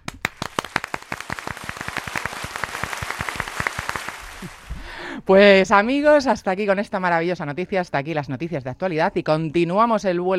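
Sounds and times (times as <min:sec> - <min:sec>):
hosts clapping applause in studio: 0:00.0 - 0:04.8
speech: 0:05.3 - 0:10.3.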